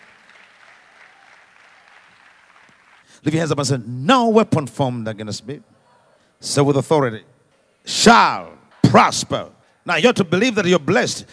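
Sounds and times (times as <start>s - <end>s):
audience clapping: 0.0s - 3.2s
speech: 3.2s - 5.7s, 6.4s - 11.3s.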